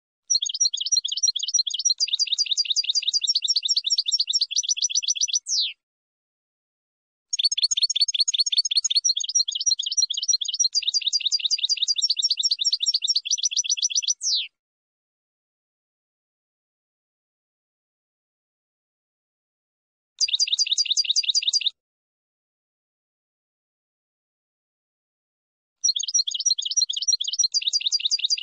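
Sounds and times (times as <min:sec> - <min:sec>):
finch song: 0:00.3 - 0:05.8, 0:07.3 - 0:14.6, 0:20.2 - 0:21.8, 0:25.8 - 0:28.4.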